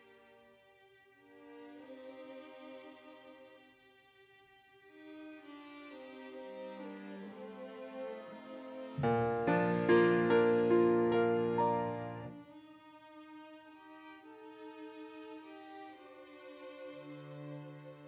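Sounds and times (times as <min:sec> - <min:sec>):
piano: 0:09.0 - 0:12.4.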